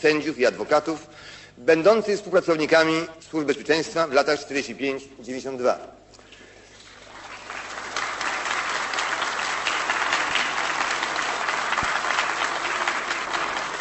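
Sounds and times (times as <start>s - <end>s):
speech: 0.0s - 6.0s
sustained applause from a large assembly audience: 6.8s - 13.7s.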